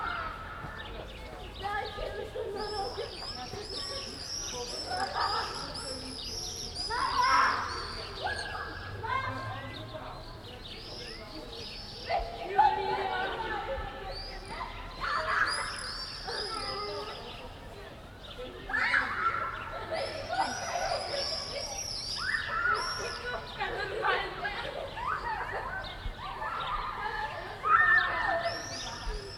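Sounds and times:
distant suburban playground ambience: 0:00.0 - 0:29.3.

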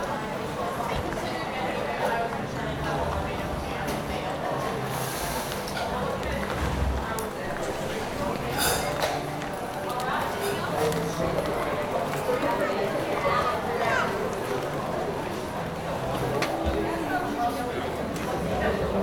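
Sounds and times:
voices walla in an indoor station cafe restaurant: 0:00.0 - 0:19.0.

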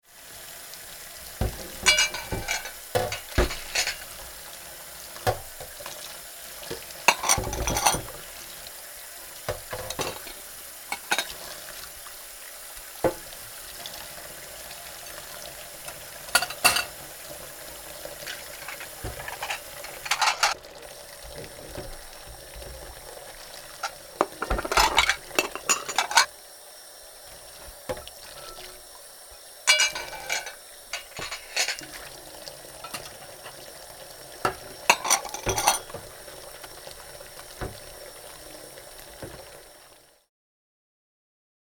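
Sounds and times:
water flowing in the sink: 0:00.1 - 0:40.2
plates clinking while washing dishes in the sink: 0:01.4 - 0:04.4, 0:05.3 - 0:06.0, 0:06.6 - 0:08.2, 0:09.5 - 0:11.4, 0:15.9 - 0:17.0, 0:18.2 - 0:20.6, 0:23.7 - 0:26.3, 0:27.9 - 0:28.8, 0:29.7 - 0:32.2, 0:32.8 - 0:33.7, 0:34.4 - 0:36.8.

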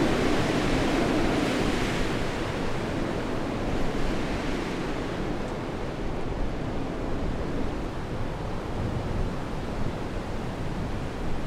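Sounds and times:
strong wind gusts blowing: 0:00.0 - 0:11.4.

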